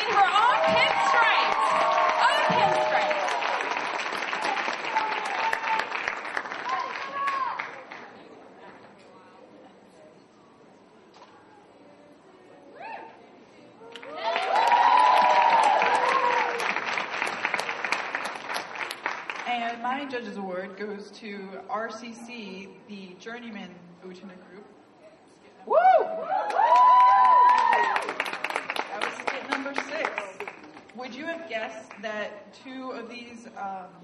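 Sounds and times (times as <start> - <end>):
audience applause: 0.0 - 8.2, 13.9 - 19.5, 26.3 - 30.9
speech: 21.1 - 24.8, 31.6 - 34.0.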